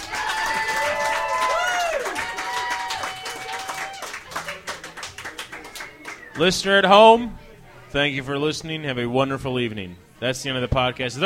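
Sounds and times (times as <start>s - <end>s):
crowd applauding for a band: 0.0s - 6.5s
speech: 6.4s - 11.2s.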